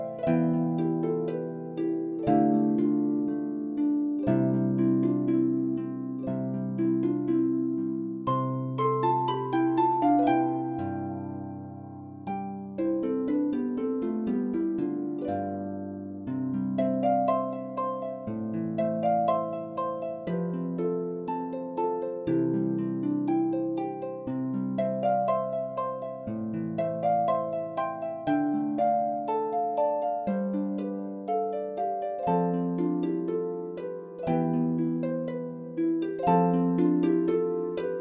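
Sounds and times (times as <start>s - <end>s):
concert harp lullaby: 0.0s - 37.9s.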